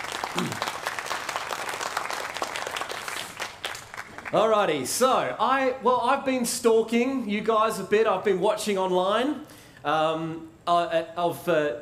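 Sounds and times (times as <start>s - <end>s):
audience applause: 0.0s - 4.6s
speech: 4.3s - 11.8s.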